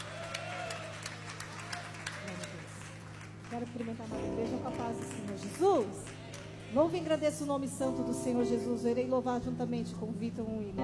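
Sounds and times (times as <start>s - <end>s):
audience applause: 0.0s - 7.1s
speech: 3.5s - 10.8s.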